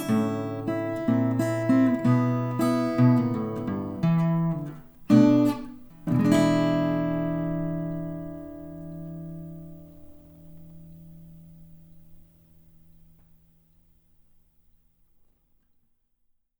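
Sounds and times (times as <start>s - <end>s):
blues music: 0.0s - 10.9s.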